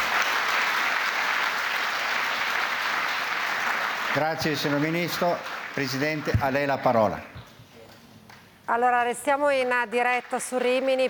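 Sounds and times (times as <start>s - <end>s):
audience applauding: 0.0s - 7.3s, 9.9s - 11.0s
speech: 4.2s - 7.5s, 8.7s - 11.0s.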